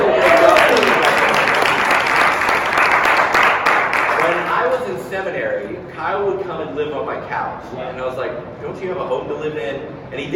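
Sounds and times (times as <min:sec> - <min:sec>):
audience applause: 0:00.0 - 0:04.6
speech: 0:06.2 - 0:10.3.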